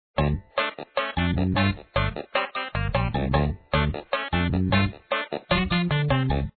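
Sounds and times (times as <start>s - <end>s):
background intro music: 0.2s - 6.5s.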